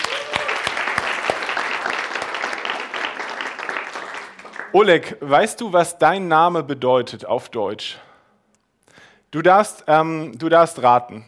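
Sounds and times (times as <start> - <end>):
audience applause: 0.0 - 5.0
speech: 4.7 - 8.1, 9.3 - 11.2.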